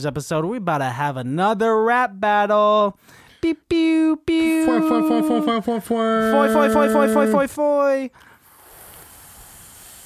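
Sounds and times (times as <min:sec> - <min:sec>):
speech: 0:00.0 - 0:08.3
voice imitating ocean waves: 0:04.3 - 0:07.5.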